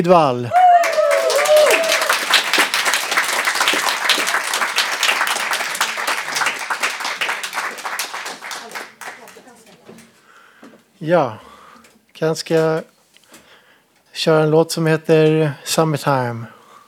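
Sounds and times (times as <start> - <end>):
speech: 0.0 - 0.6, 11.0 - 11.5, 12.2 - 12.9, 14.2 - 16.6
audience applause: 0.5 - 9.5.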